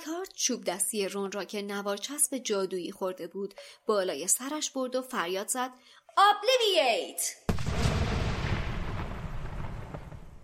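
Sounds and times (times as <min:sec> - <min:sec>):
speech: 0:00.1 - 0:07.8
explosion like a small bomb: 0:07.5 - 0:10.4
heavy deep rumble: 0:07.5 - 0:10.4.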